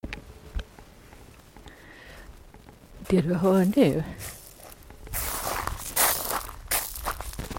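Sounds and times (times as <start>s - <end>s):
speech: 3.1s - 4.4s
footsteps on a gravel yard outside Tyresö Castle: 3.4s - 7.5s.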